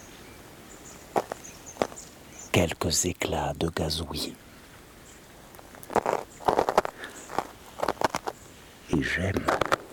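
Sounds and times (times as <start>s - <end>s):
footsteps crunching on crusted icy snow: 1.1s - 2.2s, 5.6s - 8.4s, 9.0s - 9.9s
speech: 2.6s - 4.5s, 9.0s - 9.7s.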